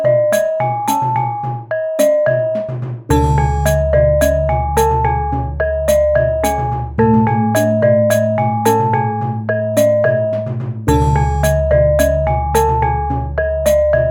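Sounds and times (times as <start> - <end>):
gamelan music: 0.0 - 14.0.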